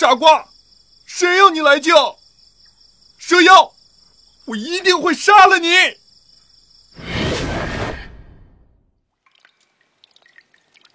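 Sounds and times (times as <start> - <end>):
speech: 0.0 - 0.5, 1.1 - 2.2, 3.2 - 3.8, 4.5 - 6.0
water dripping: 9.1 - 10.9.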